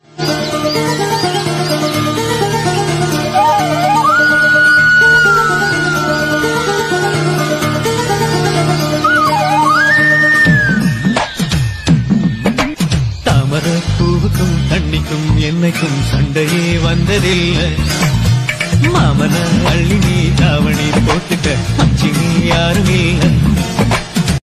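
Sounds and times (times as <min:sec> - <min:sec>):
background music ringtone: 0:00.0 - 0:24.4.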